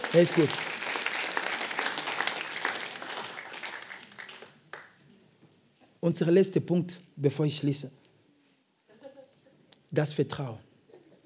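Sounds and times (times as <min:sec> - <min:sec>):
crowd applauding: 0:00.0 - 0:05.0
speech: 0:00.1 - 0:00.8, 0:06.0 - 0:08.0, 0:10.0 - 0:10.7.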